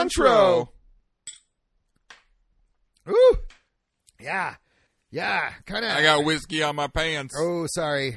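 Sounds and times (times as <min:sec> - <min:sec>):
speech: 0:00.0 - 0:00.8, 0:03.1 - 0:03.5, 0:04.2 - 0:08.1
glasses clinking in a toast: 0:01.3 - 0:01.6.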